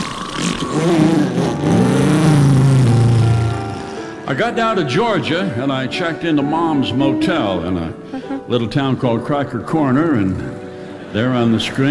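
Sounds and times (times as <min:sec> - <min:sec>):
car engine starting and revving to drive off: 0:00.0 - 0:04.0
speech: 0:04.3 - 0:11.8.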